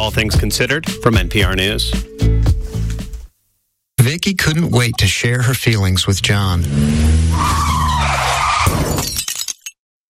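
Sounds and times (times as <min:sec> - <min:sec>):
speech: 0:00.0 - 0:02.1, 0:04.2 - 0:08.8
car skidding before hitting pedestrian: 0:06.2 - 0:08.8
strained car engine: 0:06.5 - 0:08.0
crash: 0:06.7 - 0:09.7
clattering breaking impacts: 0:07.0 - 0:09.8.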